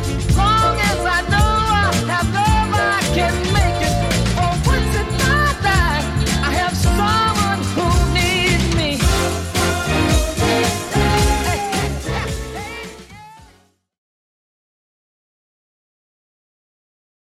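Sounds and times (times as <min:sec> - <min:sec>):
60s-style drum beat at 110 BPM: 0:00.0 - 0:06.0, 0:06.8 - 0:13.1.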